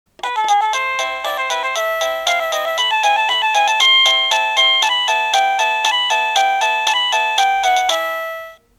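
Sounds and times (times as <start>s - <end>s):
melody: 0.2s - 8.6s.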